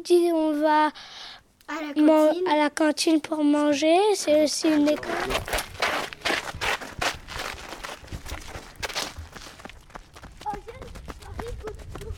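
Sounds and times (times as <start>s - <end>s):
speech: 0.0s - 5.7s
children running footsteps at a school toward its canteen: 4.1s - 12.1s.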